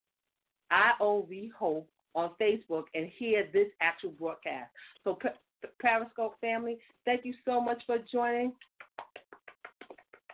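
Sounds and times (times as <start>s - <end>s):
speech: 0.7s - 8.7s
hands clapping: 8.6s - 10.3s.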